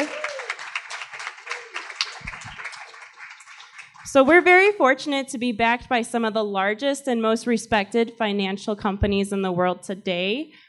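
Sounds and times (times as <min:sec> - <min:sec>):
audience applause: 0:00.0 - 0:04.3
speech: 0:04.1 - 0:10.6.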